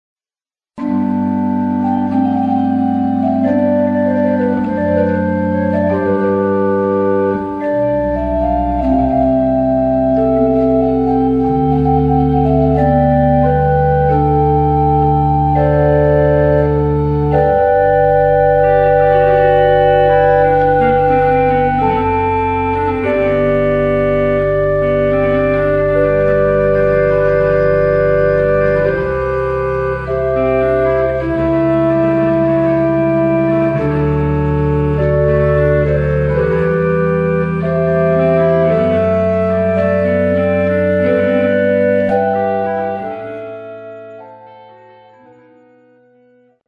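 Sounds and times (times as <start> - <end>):
crumhorn organ stop en taille: 0.8 - 45.9.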